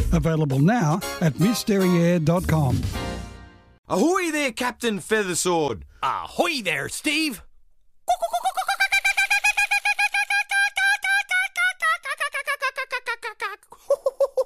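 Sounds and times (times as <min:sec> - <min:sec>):
speech: 0:00.1 - 0:03.0, 0:03.9 - 0:07.5
voice imitating the laughing call of an Australian kookaburra: 0:08.1 - 0:14.4.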